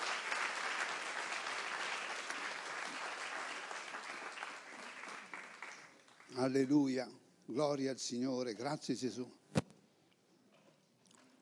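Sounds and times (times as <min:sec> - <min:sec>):
audience applause: 0:00.0 - 0:06.4
speech: 0:06.3 - 0:09.4.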